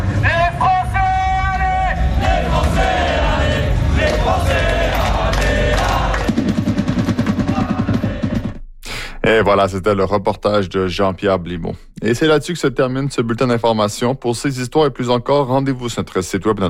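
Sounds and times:
French football supporters of les Bleus cheering and chanting: 0.0s - 8.6s
French football supporters singing: 1.4s - 8.6s
speech: 9.3s - 16.6s.

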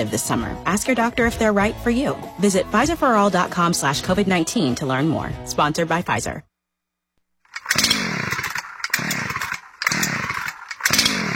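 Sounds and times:
speech: 0.0s - 6.5s
chainsaw engine revving: 7.4s - 11.3s.

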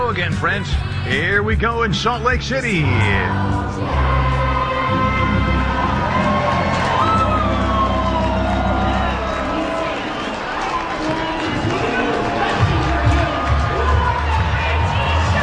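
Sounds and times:
speech: 0.1s - 4.0s
sellout ballpark crowd cheering: 3.5s - 15.4s.

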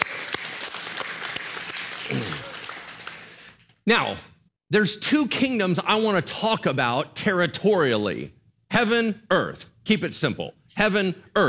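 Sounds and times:
audience applause: 0.0s - 3.7s
speech: 3.9s - 11.4s.

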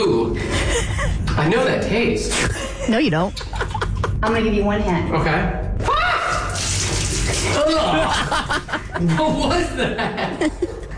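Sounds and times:
speech: 0.0s - 3.6s, 4.2s - 5.7s, 7.5s - 10.8s
people laughing: 0.4s - 1.3s, 2.4s - 4.2s, 7.5s - 10.9s
cold liquid splashing after a missed toss: 6.3s - 8.0s.

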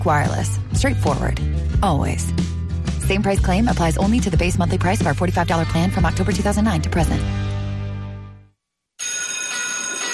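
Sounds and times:
speech: 0.0s - 7.5s
loud harsh electric school bell clanging: 9.0s - 10.1s.

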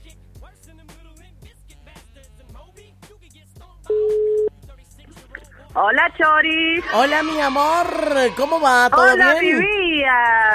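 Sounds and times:
phone ringback tone: 3.9s - 4.5s
speech: 5.8s - 10.5s.

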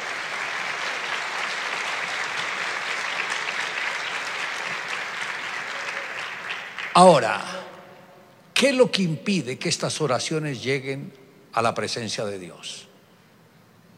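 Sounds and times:
audience applause: 0.0s - 7.3s
speech: 7.0s - 7.5s, 8.6s - 12.9s.

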